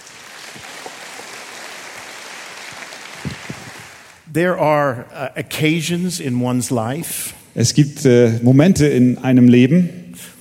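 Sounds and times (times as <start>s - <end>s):
audience applause: 0.0s - 4.2s
speech: 4.4s - 10.0s.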